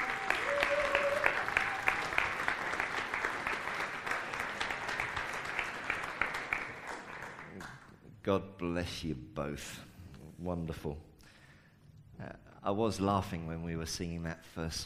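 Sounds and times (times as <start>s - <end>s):
roomful of people clapping: 0.0s - 8.1s
speech: 8.3s - 11.1s, 12.7s - 14.8s.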